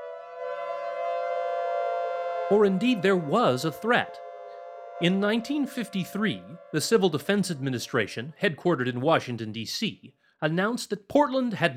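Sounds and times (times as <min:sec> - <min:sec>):
civil defense air raid siren wailing across the city: 0:00.0 - 0:08.4
speech: 0:02.5 - 0:04.2, 0:05.0 - 0:11.7.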